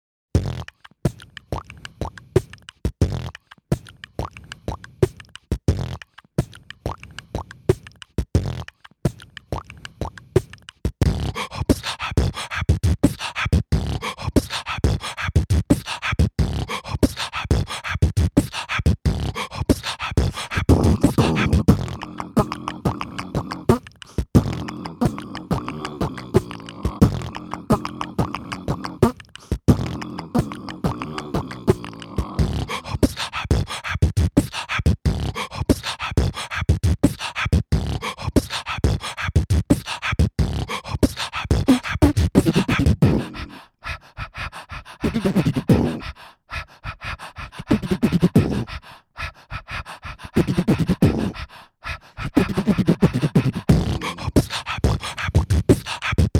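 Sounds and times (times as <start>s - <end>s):
beatboxing: 0.4s - 56.3s.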